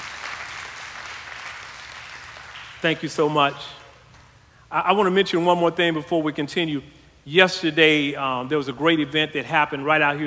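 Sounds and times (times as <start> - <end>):
church congregation applauding fathers during a service: 0.0 - 3.4
speech: 2.8 - 3.8, 4.7 - 10.2.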